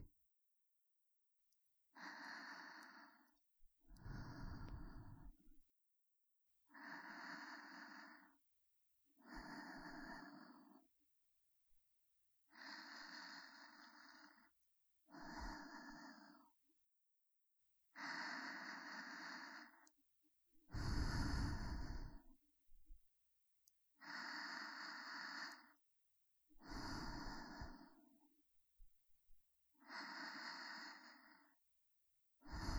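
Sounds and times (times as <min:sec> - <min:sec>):
breathing in the right and left ear: 0:02.0 - 0:03.4, 0:04.0 - 0:05.4, 0:06.7 - 0:08.4, 0:09.2 - 0:10.8, 0:12.5 - 0:16.6, 0:18.0 - 0:19.9, 0:20.7 - 0:22.3, 0:24.0 - 0:25.8, 0:26.6 - 0:28.1, 0:29.8 - 0:31.6, 0:32.4 - 0:32.7.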